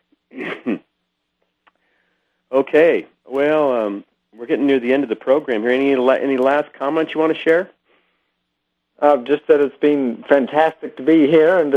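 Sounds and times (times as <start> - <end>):
person coughing: 0.3 - 0.9
speech: 2.6 - 7.8, 9.0 - 11.7.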